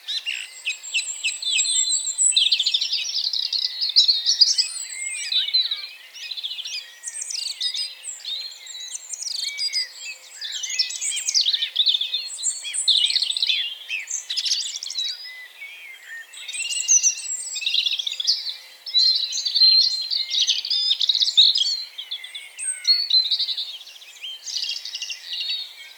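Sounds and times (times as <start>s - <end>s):
many birds singing: 0.0s - 25.9s.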